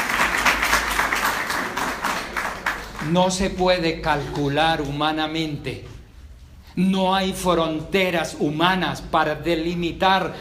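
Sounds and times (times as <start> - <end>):
church congregation clapping for the Lord: 0.0 - 5.0
speech: 3.0 - 5.9, 6.8 - 10.3.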